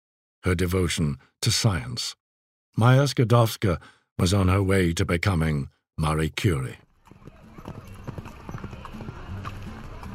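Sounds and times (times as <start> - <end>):
speech: 0.4 - 2.2, 2.8 - 6.8
horse hooves clip-clopping of a horse-drawn coach: 6.9 - 10.1.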